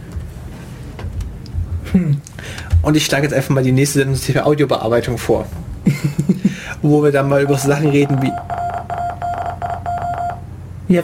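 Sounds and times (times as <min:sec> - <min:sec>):
low hum: 0:00.0 - 0:11.0
speech: 0:01.9 - 0:08.5
laughter: 0:05.8 - 0:06.7
Morse code beeps from online translator: 0:07.3 - 0:10.5.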